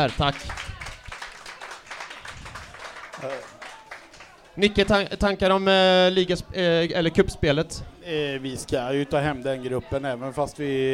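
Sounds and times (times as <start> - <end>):
speech: 0.0 - 0.7, 3.2 - 3.6, 4.6 - 10.9
audience applause: 0.0 - 5.1.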